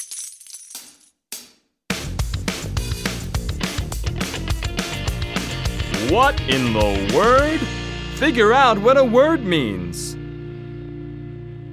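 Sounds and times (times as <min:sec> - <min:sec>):
coins pouring into a treasure chest: 0:00.0 - 0:01.1
loud rhythmic music: 0:01.9 - 0:09.4
speech: 0:06.1 - 0:10.0.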